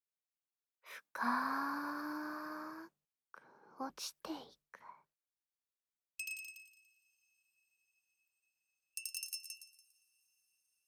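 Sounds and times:
speech: 0.9s - 2.3s, 3.8s - 5.0s
magic muddler clinking against a glass while stirring: 9.0s - 10.2s.

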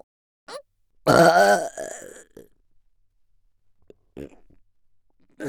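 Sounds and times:
person burping: 1.1s - 2.5s, 4.1s - 4.6s.

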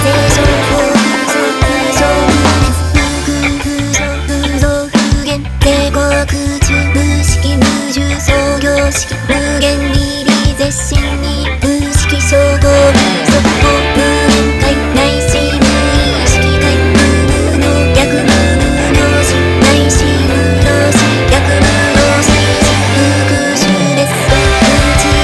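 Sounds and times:
pop rock version of a Buddhist sutra: 0.0s - 25.2s.

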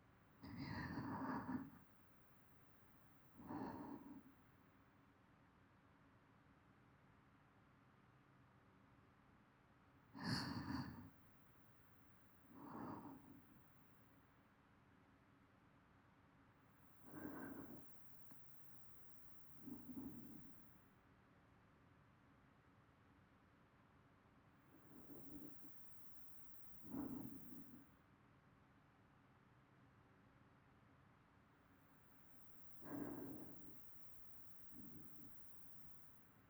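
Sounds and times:
person breathing in sleep loop: 0.4s - 1.8s, 3.4s - 4.2s, 10.2s - 11.2s, 12.5s - 13.6s, 17.0s - 20.6s, 24.8s - 27.8s, 32.3s - 36.1s.

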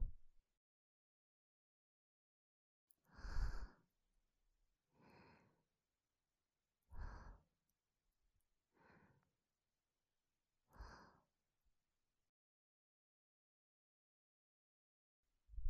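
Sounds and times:
soft angelic breathing: 3.1s - 3.8s, 5.0s - 5.6s, 7.0s - 7.5s, 8.8s - 9.3s, 10.8s - 11.3s.

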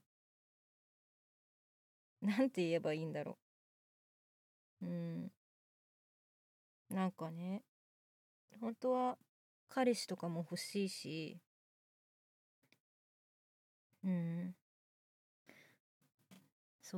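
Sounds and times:
boyish new female voice actress performing: 2.2s - 3.4s, 4.8s - 5.4s, 6.9s - 7.7s, 8.6s - 11.4s.

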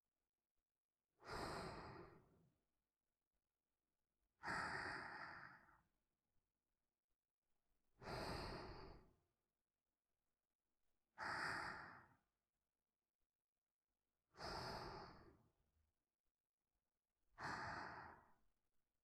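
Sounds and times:
person breathing in sleep: 1.2s - 2.4s, 4.4s - 5.9s, 8.0s - 9.2s, 11.2s - 12.3s, 14.3s - 15.6s, 17.4s - 18.5s.

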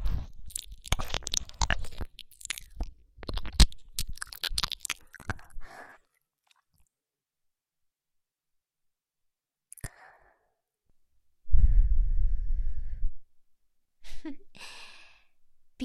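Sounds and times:
ear licking: 0.1s - 5.7s
breathing sighs: 11.5s - 13.2s, 14.6s - 15.4s.

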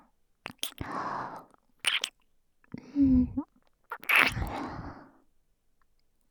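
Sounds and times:
ear licking: 0.4s - 2.2s, 3.0s - 4.8s
kissing: 0.5s - 1.0s, 1.8s - 2.2s, 3.0s - 4.9s.

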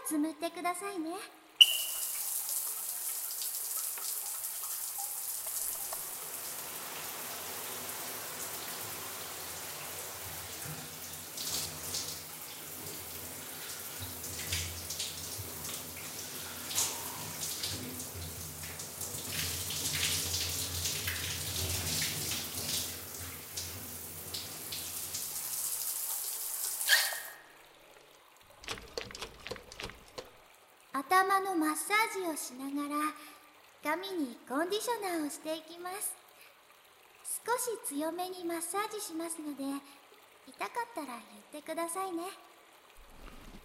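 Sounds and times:
speech: 0.1s - 1.5s, 31.4s - 36.2s, 37.6s - 40.0s, 40.6s - 42.5s
water rinsing shampoo foam from hair: 1.6s - 30.5s.

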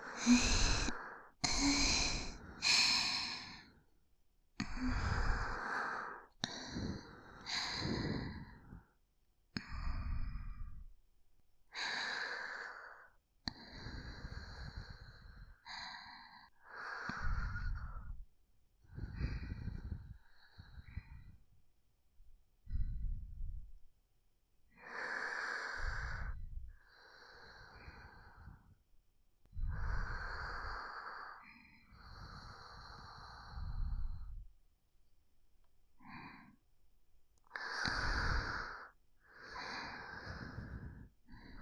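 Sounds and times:
sleeping breath: 0.0s - 3.8s, 4.6s - 9.0s, 9.6s - 10.9s, 11.7s - 18.2s, 18.8s - 21.5s, 22.6s - 23.8s, 24.8s - 28.8s, 29.5s - 34.5s, 37.5s - 41.6s.

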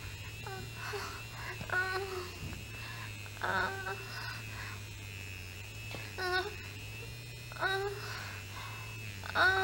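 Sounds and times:
woman moaning while masturbating with a vibrator: 0.1s - 4.9s, 6.1s - 6.8s, 7.5s - 9.6s.

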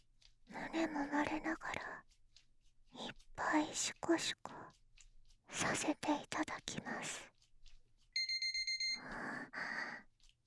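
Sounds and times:
speech: 0.7s - 1.9s, 3.6s - 4.6s, 5.6s - 7.3s
timer alarm ringing: 8.2s - 9.2s.

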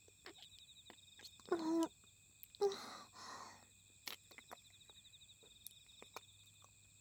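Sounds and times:
kissing: 0.2s - 2.8s, 4.0s - 5.0s, 5.6s - 6.3s.

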